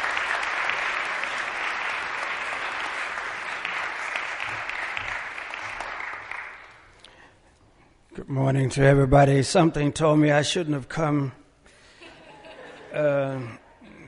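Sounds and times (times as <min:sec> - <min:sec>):
audience applause welcoming a guest speaker at a morning chapel service: 0:00.0 - 0:06.9
speech: 0:08.2 - 0:11.4
laughter: 0:12.0 - 0:14.0.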